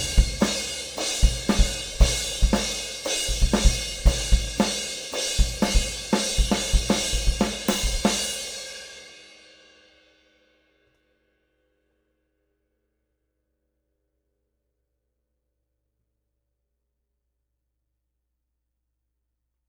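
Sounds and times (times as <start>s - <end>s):
Sabian Proto AA cymbal: 0.0s - 10.7s.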